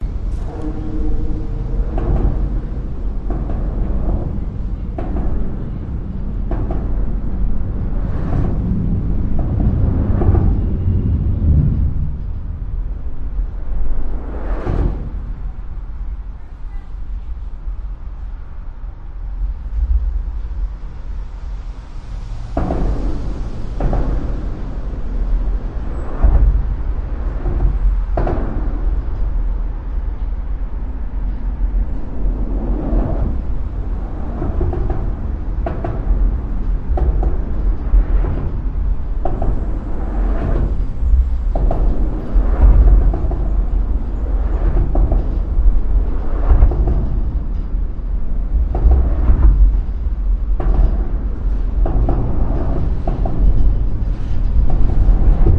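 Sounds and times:
traffic of cars, trucks, motorcycles, buses and pickups under a bridge: 0.0 - 55.5.

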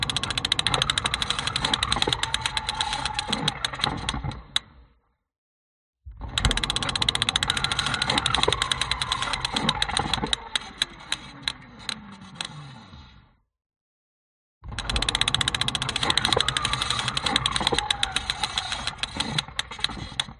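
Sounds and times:
broken bike wheel ratchet spinning on contact mic: 0.0 - 4.2, 6.4 - 11.6, 14.7 - 20.3.

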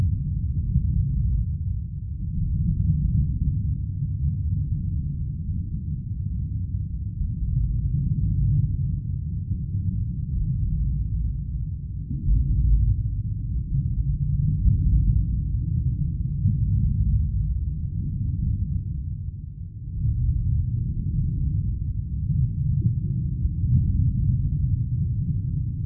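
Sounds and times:
underwater water rumbling: 0.0 - 25.8.

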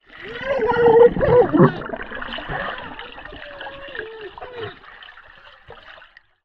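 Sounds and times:
underwater bubbles: 0.0 - 6.4
eight-year-old boy shouting underwater: 0.1 - 4.9.

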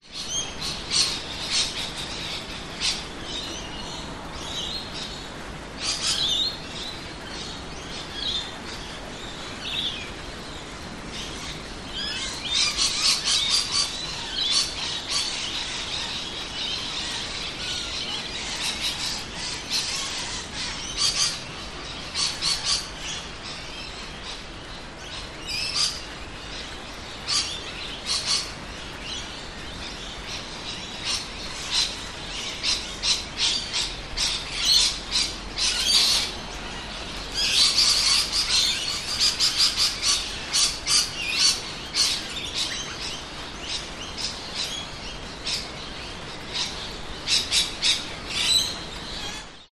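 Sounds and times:
lorikeets calling: 0.0 - 49.7
suburban rain in public places: 0.0 - 49.7.

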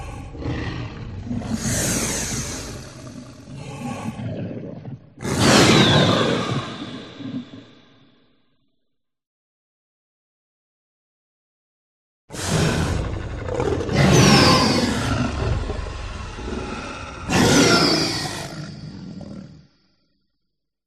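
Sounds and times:
dinosaur growl: 0.0 - 7.8, 12.3 - 19.8.

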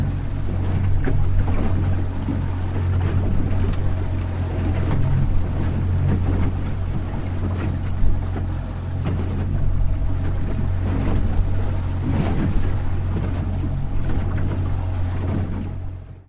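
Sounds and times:
choppy sea waves against motorboat hull: 0.0 - 16.2
motorboat driving slowly on choppy sea, recorded close to floor hull: 0.0 - 16.2.

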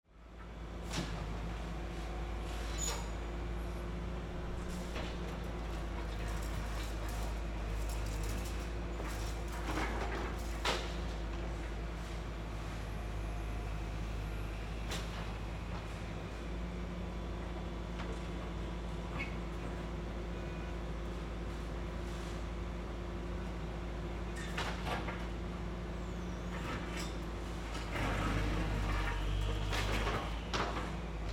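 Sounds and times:
construction site ambience: 0.1 - 31.3.

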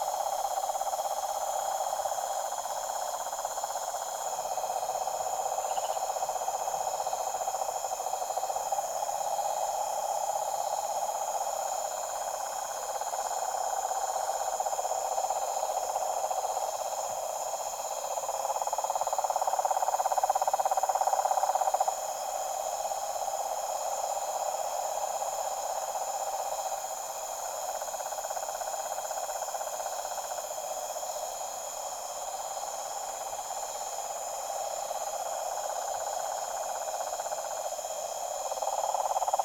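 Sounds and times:
deep toad chorus at a tropical pond at night: 0.0 - 39.4.

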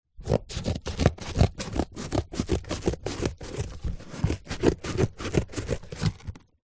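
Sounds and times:
office scissors cutting cardboard: 0.2 - 6.5.

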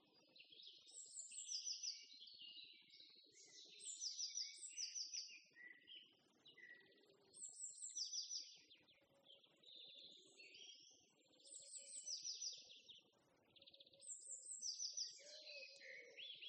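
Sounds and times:
birds on a spring morning in the countryside: 0.0 - 16.4.

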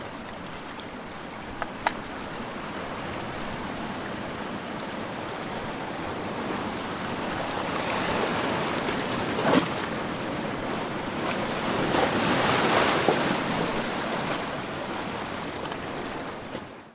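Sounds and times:
ocean waves lapping onto rocks of a shallow rock pool: 0.0 - 16.8.

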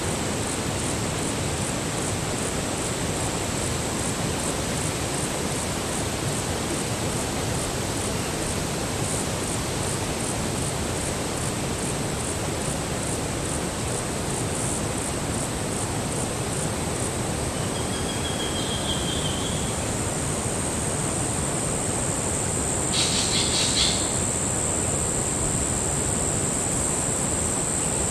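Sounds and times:
forest insects: 0.0 - 28.0
strong wind in forest tree tops: 0.0 - 28.0
spangled drongo bird call: 17.7 - 19.7, 22.9 - 24.2.

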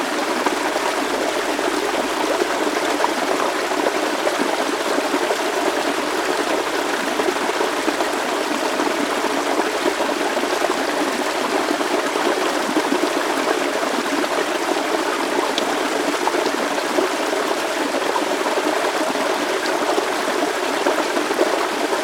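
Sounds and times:
small forest waterfall: 0.0 - 22.0.

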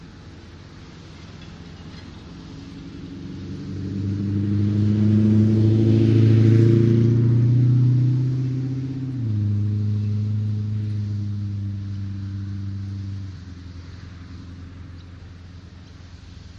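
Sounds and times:
occasional traffic on a town outskirts road: 0.0 - 16.5.

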